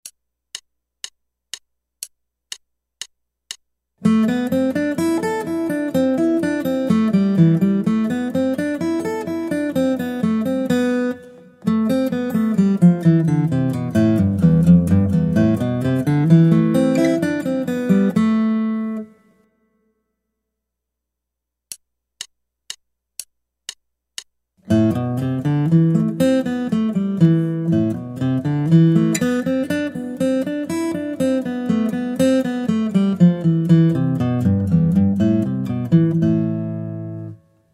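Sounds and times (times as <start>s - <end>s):
guitar: 4.0s - 19.7s, 24.6s - 37.7s.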